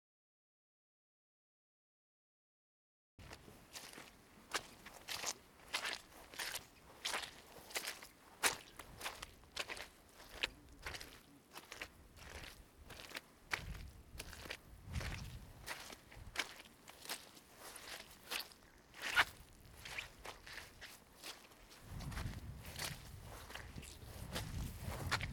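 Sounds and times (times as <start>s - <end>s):
footsteps in mud: 3.2s - 25.3s.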